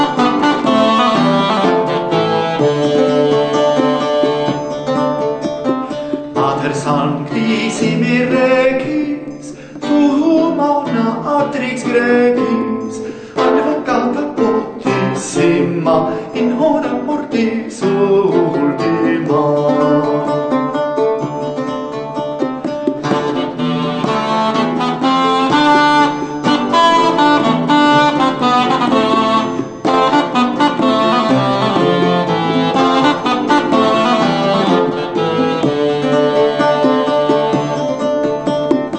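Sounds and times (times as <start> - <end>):
cornamusa bagpipe: 0.0 - 4.8, 23.0 - 38.0
lute: 0.0 - 38.9.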